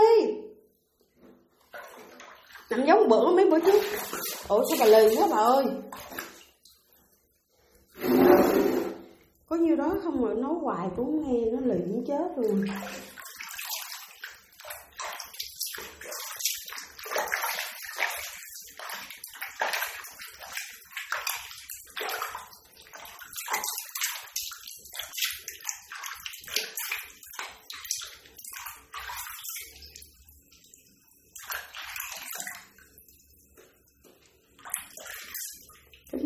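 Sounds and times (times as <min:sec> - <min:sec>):
water splashing in a tub while washing a dog: 0:01.4 - 0:09.4, 0:11.0 - 0:36.2
speech: 0:02.7 - 0:06.3, 0:09.5 - 0:13.0.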